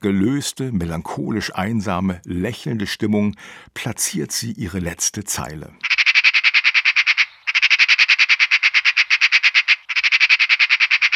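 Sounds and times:
speech: 0.0s - 5.9s
magpie call: 5.8s - 11.1s.

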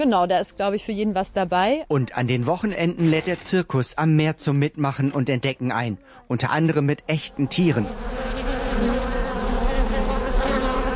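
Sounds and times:
speech: 0.0s - 8.2s
honeybees buzzing at a bee farm: 7.1s - 10.9s.

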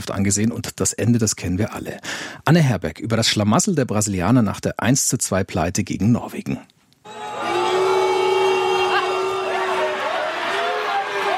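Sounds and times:
speech: 0.0s - 6.8s
large stadium crowd booing: 7.1s - 11.3s
people shouting in the crowd: 7.1s - 11.3s.

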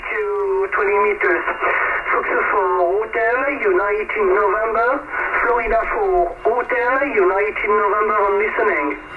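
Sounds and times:
thin band-limited voice over amateur shortwave radio from France: 0.0s - 9.0s.

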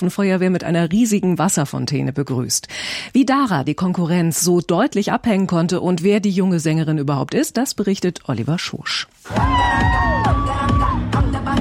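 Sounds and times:
speech: 0.0s - 11.0s
high shouts and whoops: 9.3s - 11.2s
hundreds of fans cheering in an airport arrival hall: 9.3s - 11.5s.

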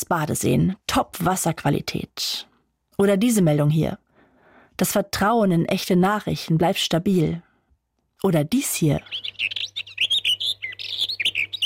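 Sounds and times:
speech: 0.0s - 4.0s, 4.8s - 7.5s, 8.2s - 9.6s
birds chirping: 9.0s - 11.6s.

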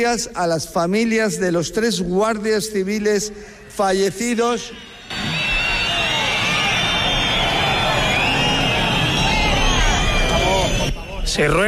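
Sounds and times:
speech: 0.0s - 5.3s, 11.3s - 11.6s
crowd whistling: 3.9s - 11.6s
crowd booing: 4.6s - 11.2s.

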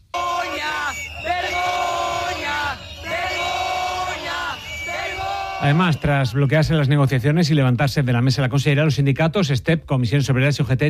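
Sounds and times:
crowd of protesters shouting and chanting: 0.0s - 6.6s
speech: 5.6s - 10.8s.

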